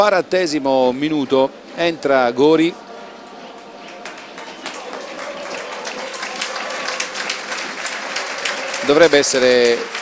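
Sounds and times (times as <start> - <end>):
speech: 0.0 - 2.8, 8.9 - 10.0
stadium crowd applauding: 3.5 - 10.0.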